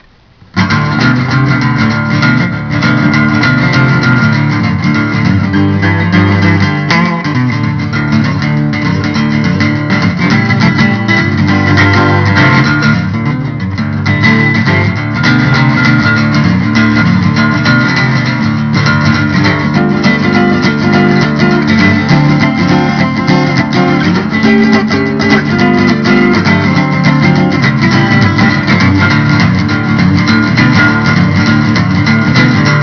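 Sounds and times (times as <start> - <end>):
blues music: 0.0 - 32.8.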